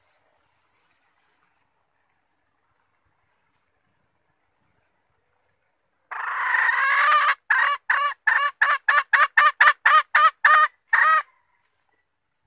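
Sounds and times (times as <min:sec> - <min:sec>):
Red junglefowl hen clucking: 0:06.1 - 0:11.4.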